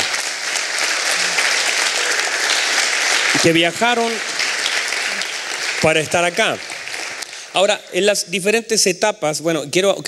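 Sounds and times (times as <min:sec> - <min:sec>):
crowd applause: 0:00.0 - 0:08.0
speech: 0:03.4 - 0:04.3, 0:05.8 - 0:06.7, 0:07.6 - 0:10.0.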